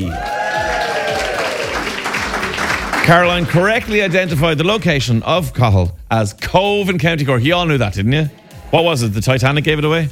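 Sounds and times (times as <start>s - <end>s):
applause for a competition winner: 0.0s - 4.6s
music with sustained tones and a regular low beat: 0.1s - 10.0s
speech: 3.1s - 10.0s.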